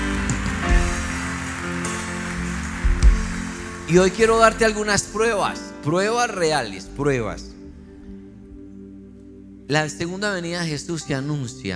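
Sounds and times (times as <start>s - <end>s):
audience applause: 0.0s - 5.2s
speech: 3.9s - 7.5s, 9.7s - 11.7s.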